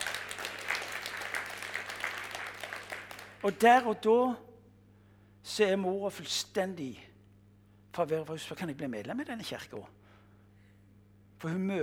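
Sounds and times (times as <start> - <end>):
audience clapping: 0.0 - 3.9
speech: 3.4 - 4.5, 5.5 - 7.1, 7.9 - 10.0, 11.4 - 11.8.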